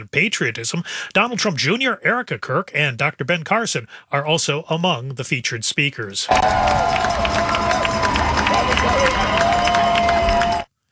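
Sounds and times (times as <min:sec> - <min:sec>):
speech: 0:00.0 - 0:10.0
crowd cheering as ship docks: 0:06.3 - 0:10.7
whistles: 0:06.3 - 0:10.7.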